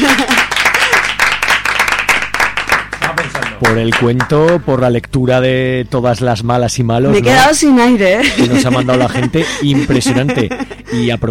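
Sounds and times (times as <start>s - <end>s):
studio audience applause: 0.0s - 4.6s
speech: 3.6s - 11.2s
laughter: 8.2s - 11.2s.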